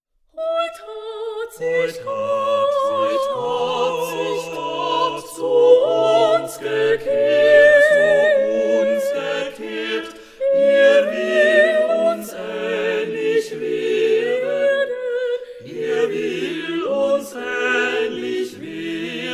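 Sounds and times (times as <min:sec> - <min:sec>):
German sacred choral piece: 0:00.4 - 0:19.3.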